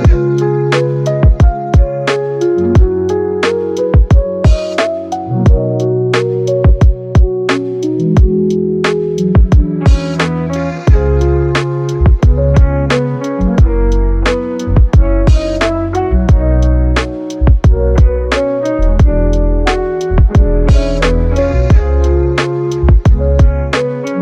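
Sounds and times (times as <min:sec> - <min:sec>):
lo-fi hip hop beat: 0:00.0 - 0:24.2.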